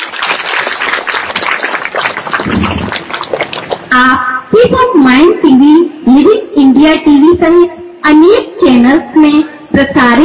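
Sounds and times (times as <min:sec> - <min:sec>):
loud applause: 0:00.0 - 0:03.9
speech: 0:04.0 - 0:10.2.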